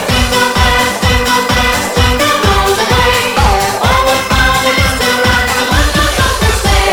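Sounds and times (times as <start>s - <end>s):
choppy jingle bell: 0.0s - 6.8s.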